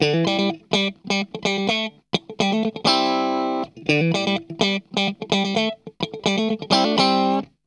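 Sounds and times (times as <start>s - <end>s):
funk guitar: 0.0s - 7.6s.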